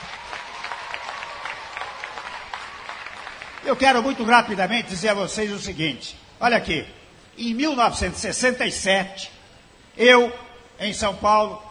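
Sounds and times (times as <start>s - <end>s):
audience applauding the orchestra musicians: 0.0s - 4.2s
speech: 3.7s - 9.4s, 10.0s - 11.6s.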